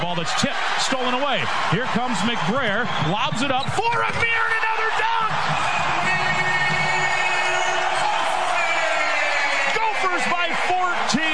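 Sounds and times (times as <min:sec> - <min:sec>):
basketball arena crowd cheering: 0:00.0 - 0:11.3
speech: 0:00.1 - 0:05.6
whoops and shouts from the basketball crowd: 0:03.8 - 0:10.2.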